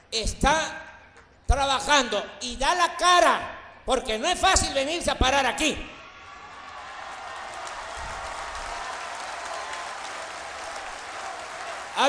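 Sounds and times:
speech: 0.1s - 0.8s, 1.5s - 5.9s
audience applause: 6.2s - 12.0s.

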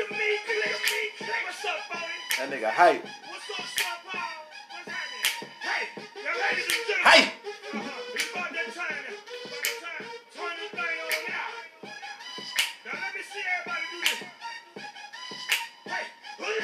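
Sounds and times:
melodic music: 0.0s - 16.6s
speech: 2.4s - 4.0s, 6.4s - 9.7s
finger snaps: 11.1s - 11.3s, 12.6s - 12.8s, 14.0s - 14.2s, 15.5s - 15.7s.

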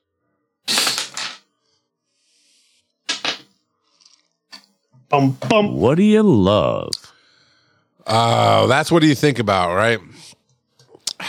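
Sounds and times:
dice being rolled: 0.7s - 1.4s, 3.1s - 4.2s
speech: 5.1s - 7.0s, 8.1s - 10.3s.

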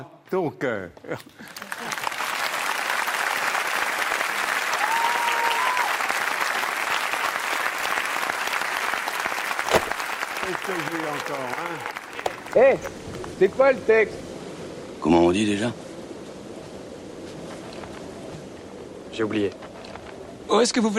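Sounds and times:
speech: 0.3s - 1.7s, 10.5s - 14.3s, 15.0s - 15.8s, 19.2s - 19.6s, 20.5s - 20.9s
audience applause: 1.4s - 13.6s.

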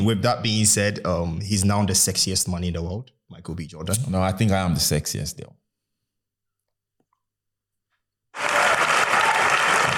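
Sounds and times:
speech: 0.0s - 5.6s
clapping applause: 8.3s - 9.9s.

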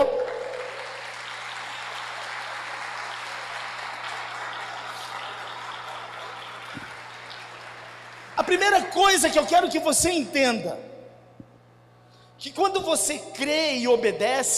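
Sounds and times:
audience applause: 0.0s - 8.9s
faint low electrical hum: 0.0s - 14.5s
speech: 8.5s - 10.9s, 12.4s - 14.5s.

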